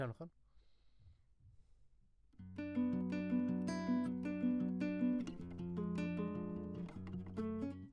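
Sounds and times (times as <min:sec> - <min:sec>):
classical guitar: 0:02.4 - 0:07.9.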